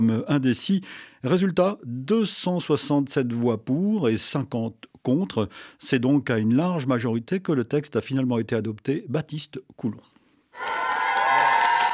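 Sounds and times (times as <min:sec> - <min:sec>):
speech: 0:00.0 - 0:10.7
activists cheering: 0:10.6 - 0:11.9
applause from activists: 0:10.6 - 0:11.9.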